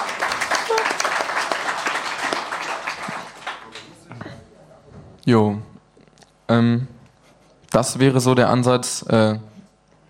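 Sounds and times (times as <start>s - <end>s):
audience applause: 0.0s - 4.0s
speech: 5.3s - 5.7s, 6.5s - 7.0s, 7.7s - 9.5s.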